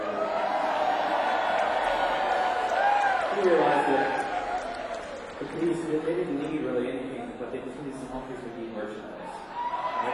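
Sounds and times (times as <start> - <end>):
audience applause: 0.0 - 6.8
speech: 3.4 - 4.2, 5.4 - 9.4.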